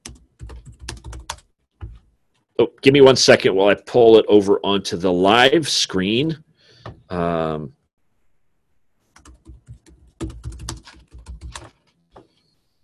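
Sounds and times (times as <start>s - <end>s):
computer keyboard typing a search into DuckDuckGo: 0.0s - 2.1s, 9.1s - 12.5s
speech: 2.6s - 6.4s, 7.1s - 7.8s.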